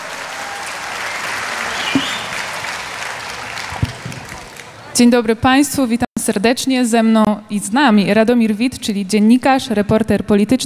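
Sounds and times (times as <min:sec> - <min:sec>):
large audience applause: 0:00.0 - 0:04.9
sharp thumps: 0:01.9 - 0:02.3
speech: 0:05.0 - 0:10.6.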